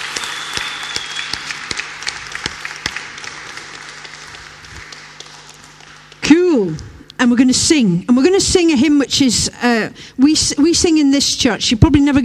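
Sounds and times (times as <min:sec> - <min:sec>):
thunderous round of applause: 0:00.0 - 0:06.2
speech: 0:06.6 - 0:12.2.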